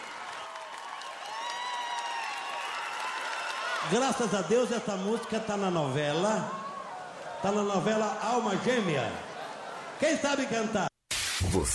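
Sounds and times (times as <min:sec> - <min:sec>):
audience clapping: 0:00.0 - 0:04.5
speech: 0:03.8 - 0:06.6, 0:07.4 - 0:09.3, 0:10.0 - 0:10.9, 0:11.6 - 0:11.7.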